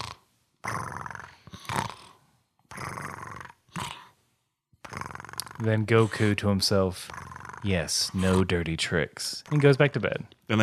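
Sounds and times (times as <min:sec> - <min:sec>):
voice imitating snoring: 0:00.0 - 0:04.2, 0:04.8 - 0:08.6
speech: 0:05.6 - 0:10.6.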